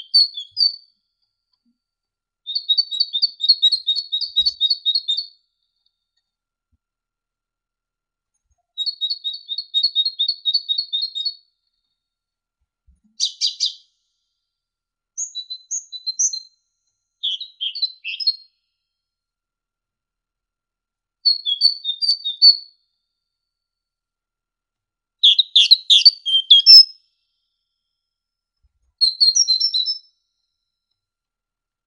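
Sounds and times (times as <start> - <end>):
great tit singing: 0.0 - 1.0, 2.5 - 5.3, 8.8 - 11.4, 13.2 - 13.9, 15.2 - 18.6, 21.3 - 22.6, 25.2 - 27.1, 29.0 - 30.1.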